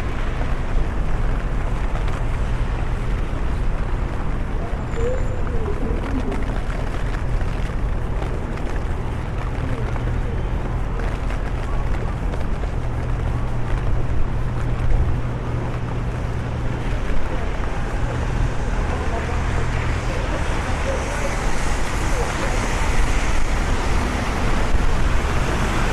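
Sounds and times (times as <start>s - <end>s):
low engine rumble: 0.0s - 25.9s
rainfall hissing in London: 0.0s - 25.9s
faint voices: 4.4s - 23.8s.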